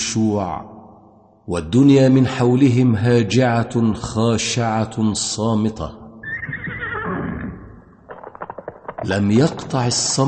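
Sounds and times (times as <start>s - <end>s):
speech: 0.1s - 0.8s, 1.5s - 6.0s, 9.0s - 10.2s
runaway mare whinnying in city streets: 6.2s - 7.8s.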